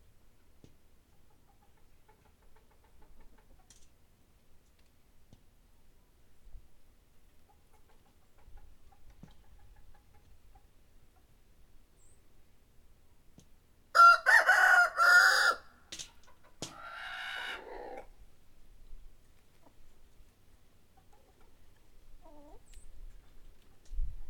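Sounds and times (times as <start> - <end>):
rooster crowing: 13.9 - 15.7.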